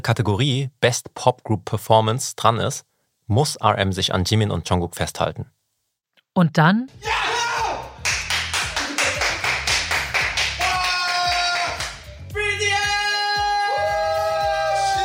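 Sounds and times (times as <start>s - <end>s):
speech: 0.0s - 5.6s, 6.4s - 7.4s
person shouting: 7.0s - 7.9s, 10.6s - 15.0s
person clapping: 8.0s - 12.1s.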